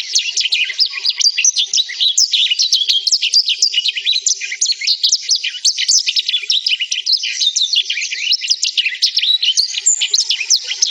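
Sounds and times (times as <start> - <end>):
black-throated canary warbling song: 0.0 - 10.8.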